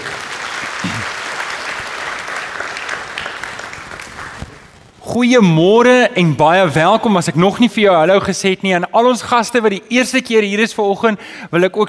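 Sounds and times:
audience clapping for the band: 0.0s - 4.8s
speech: 5.2s - 11.8s.

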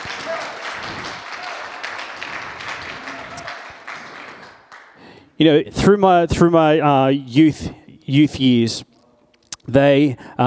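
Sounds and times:
audience applause: 0.0s - 5.0s
speech: 5.4s - 8.9s, 9.7s - 10.4s.

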